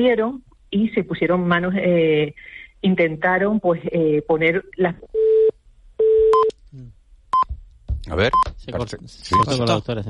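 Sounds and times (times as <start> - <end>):
speech: 0.0 - 5.2, 6.7 - 7.0, 8.1 - 10.0
telephone busy tone after a dropped call: 5.2 - 6.5.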